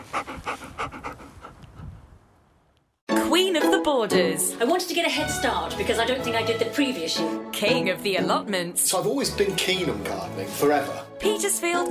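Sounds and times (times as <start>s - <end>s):
dog panting: 0.0s - 2.1s
speech: 3.4s - 11.8s.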